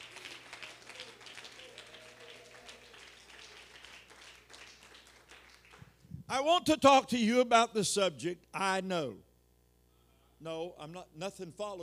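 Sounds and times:
audience clapping: 0:00.0 - 0:06.0
low constant hum: 0:00.0 - 0:11.8
speech: 0:06.3 - 0:09.3, 0:10.4 - 0:11.8.

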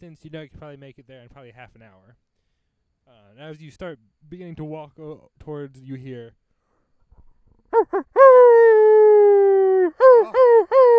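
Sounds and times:
speech: 0:00.0 - 0:02.4, 0:03.1 - 0:06.4, 0:07.7 - 0:10.9
three wolves howling: 0:07.8 - 0:10.9.

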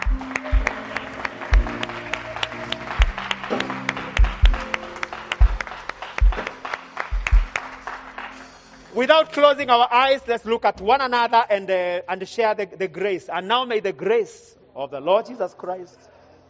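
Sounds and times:
audience clapping: 0:00.0 - 0:09.4
speech: 0:09.0 - 0:16.2.

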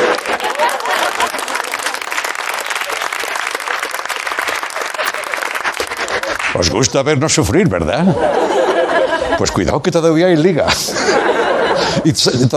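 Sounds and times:
audience applause: 0:00.0 - 0:07.3
laughter: 0:00.0 - 0:12.5
speech: 0:06.6 - 0:08.6, 0:09.4 - 0:12.5.

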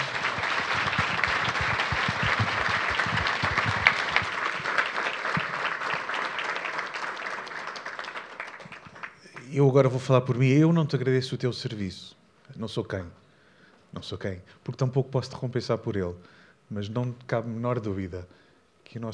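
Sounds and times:
audience applause: 0:00.0 - 0:09.6
speech: 0:09.6 - 0:13.2, 0:13.9 - 0:19.1.

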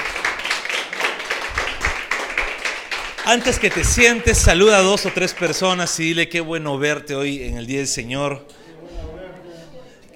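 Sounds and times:
audience clapping hands: 0:00.0 - 0:06.1
speech: 0:03.3 - 0:08.6.

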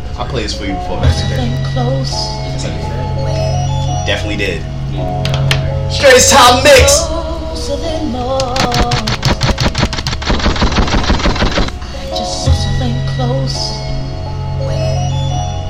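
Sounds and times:
deep sustained bass: 0:00.0 - 0:08.0, 0:12.3 - 0:15.5
speech: 0:00.2 - 0:03.4, 0:04.1 - 0:08.9
stuttering drum hits: 0:08.5 - 0:11.7.

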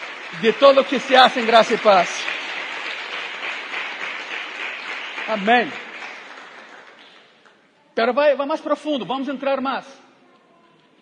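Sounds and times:
audience applause: 0:00.0 - 0:07.4
speech: 0:00.3 - 0:02.3, 0:05.3 - 0:05.8, 0:08.0 - 0:10.0.

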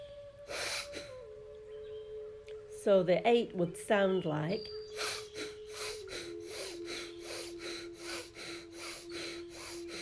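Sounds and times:
speech: 0:02.8 - 0:04.8
demonstration breath in a breathing exercise: 0:05.0 - 0:09.9.

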